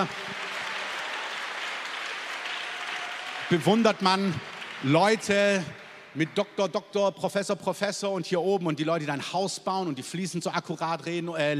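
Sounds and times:
speech: 0.0s - 0.3s, 3.5s - 11.5s
crowd applause: 0.0s - 6.7s.

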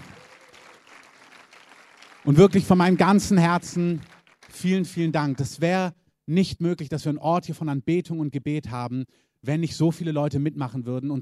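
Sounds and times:
audience applause: 0.0s - 5.5s
speech: 2.2s - 11.2s.

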